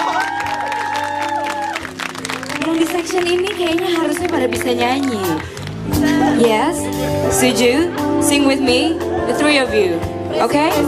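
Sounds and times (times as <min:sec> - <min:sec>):
audience applause: 0:00.0 - 0:05.9
speech: 0:02.9 - 0:10.8.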